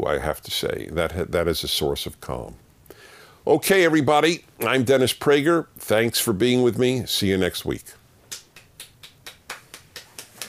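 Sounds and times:
speech: 0.0 - 2.6, 3.4 - 8.0
person clapping slowly: 8.3 - 10.4.

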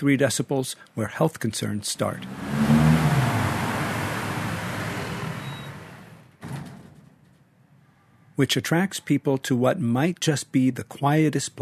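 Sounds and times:
speech: 0.0 - 2.8, 8.4 - 11.6
city street traffic: 2.0 - 6.4
engine drone: 2.1 - 6.3.

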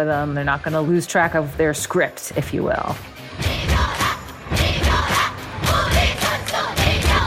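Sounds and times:
speech: 0.0 - 3.6
North Korean cheerleaders chanting cheers: 3.3 - 7.2.

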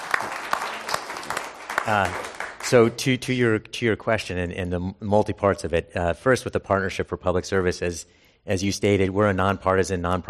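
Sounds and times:
audience round of applause: 0.0 - 2.9
speech: 1.8 - 10.2.

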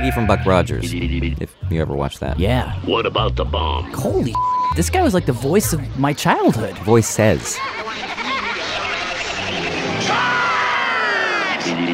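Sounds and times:
speech: 0.0 - 8.2
laughter: 6.3 - 10.4
crowd yelling: 7.2 - 11.9.

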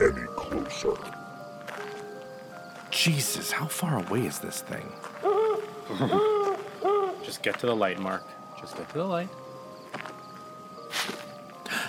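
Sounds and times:
speech: 0.0 - 1.2, 2.9 - 6.4, 7.3 - 9.4
rustling footsteps in the woods: 0.4 - 3.0, 4.7 - 8.0, 8.7 - 11.5.

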